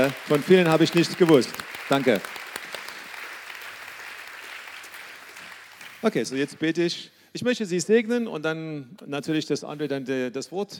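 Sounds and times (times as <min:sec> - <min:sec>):
speech: 0:00.0 - 0:02.4, 0:06.0 - 0:10.7
applause: 0:00.0 - 0:06.8.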